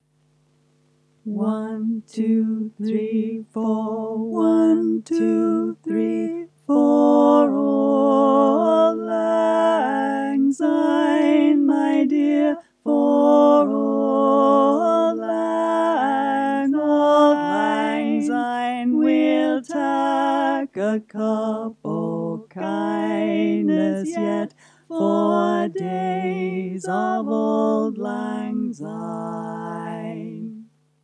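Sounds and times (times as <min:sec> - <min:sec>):
folk choir with baritone and bass voices: 0:01.3 - 0:30.6.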